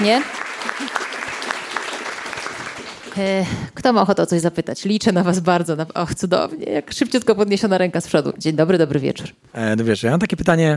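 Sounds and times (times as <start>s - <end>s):
speech: 0.0s - 0.8s, 3.2s - 10.7s
audience applause: 0.0s - 3.4s.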